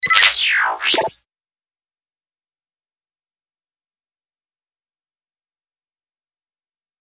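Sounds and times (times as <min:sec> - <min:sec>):
robot space alert: 0:00.0 - 0:01.1.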